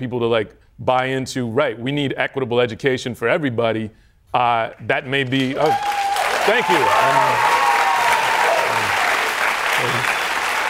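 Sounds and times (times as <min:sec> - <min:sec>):
speech: 0:00.0 - 0:07.6, 0:09.8 - 0:10.2
audience clapping: 0:04.6 - 0:10.6.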